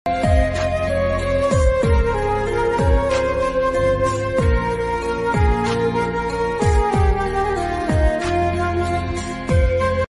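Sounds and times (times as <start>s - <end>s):
sad instrumental ringtone music: 0.1s - 10.0s.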